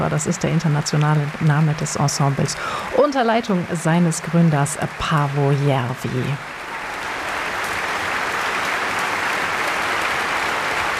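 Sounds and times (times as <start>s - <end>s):
speech: 0.0s - 6.5s
concert hall applause: 0.0s - 10.9s.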